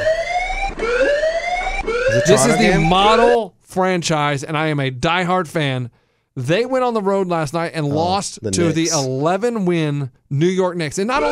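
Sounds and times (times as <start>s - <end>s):
panic alarm siren wailing: 0.0s - 3.4s
speech: 2.1s - 11.3s.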